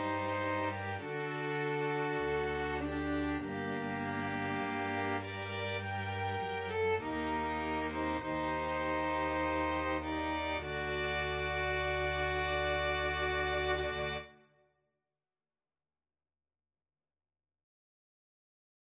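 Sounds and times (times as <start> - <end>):
string ensemble playing a sonata: 0.0 - 14.4.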